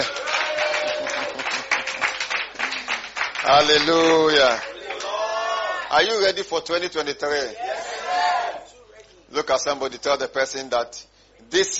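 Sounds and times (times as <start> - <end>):
church congregation clapping at a New Year service: 0.0 - 5.3
speech: 3.5 - 4.7, 5.9 - 7.6, 9.3 - 11.7.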